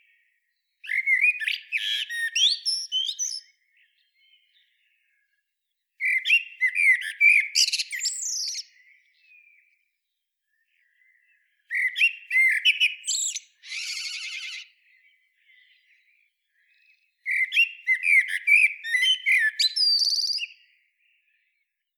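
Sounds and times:
common blackbird song: 0.8s - 4.7s, 6.0s - 9.6s, 10.8s - 16.0s, 16.6s - 20.7s.

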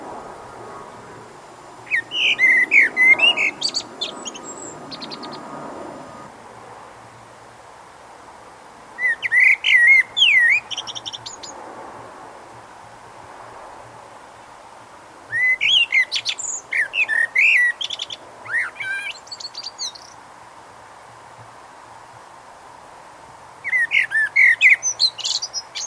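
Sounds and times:
Eurasian blackbird singing: 1.9s - 5.5s, 9.0s - 11.5s, 15.3s - 20.2s, 23.6s - 25.8s.

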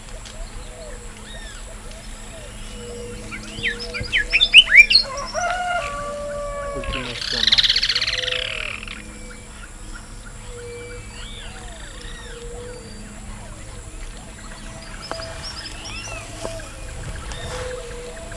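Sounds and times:
bird chorus of sharp chirps: 0.0s - 18.3s
low steady whistles: 0.0s - 18.3s.

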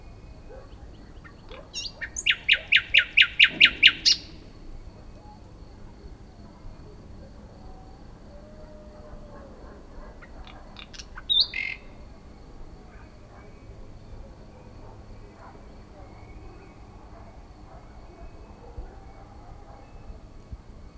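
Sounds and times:
common nightingale singing: 0.0s - 4.4s, 10.2s - 12.1s.

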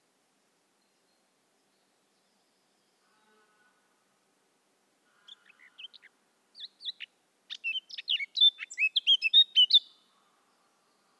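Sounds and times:
Eurasian blackcap warbling: 5.3s - 9.9s.

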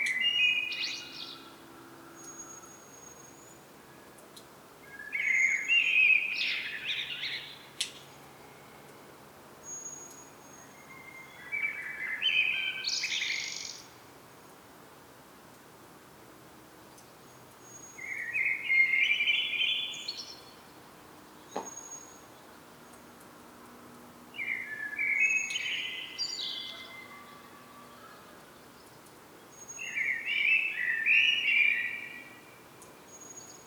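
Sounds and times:
Common blackbird singing: 0.0s - 1.6s, 4.9s - 7.6s, 9.8s - 13.8s, 17.9s - 20.4s, 24.4s - 27.5s, 29.6s - 32.5s.

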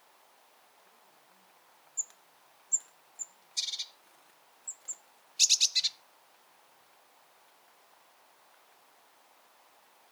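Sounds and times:
Eurasian blue tit Cyanistes caeruleus calling: 2.7s - 4.0s, 4.7s - 6.0s.

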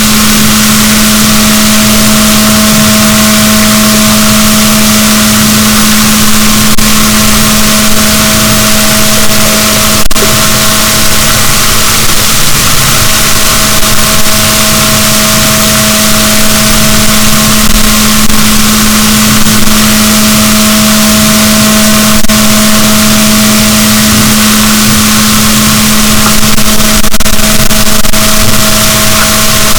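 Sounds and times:
boat noise: 0.0s - 29.7s
fin whale Balaenoptera physalus sounds: 0.0s - 29.7s.

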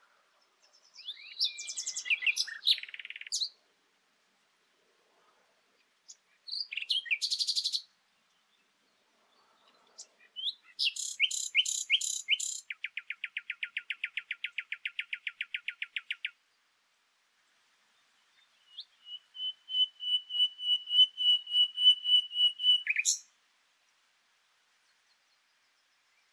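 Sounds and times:
common nightingale singing: 0.4s - 3.6s, 6.1s - 16.4s, 18.2s - 23.3s.

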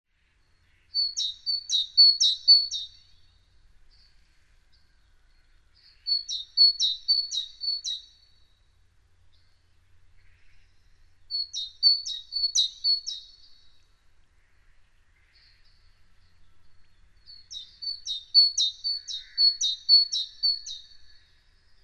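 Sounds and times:
great tit singing: 0.4s - 3.2s, 5.3s - 8.4s, 10.2s - 13.7s, 15.4s - 21.2s.

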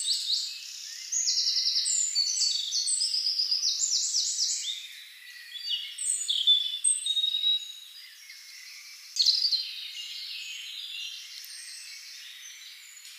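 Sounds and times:
European robin Erithacus rubecula singing: 0.0s - 13.1s.

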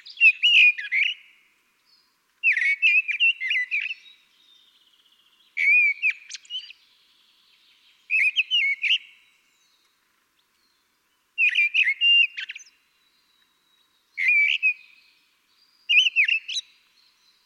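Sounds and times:
Common blackbird singing fluted whistles and twittering: 0.0s - 17.4s.

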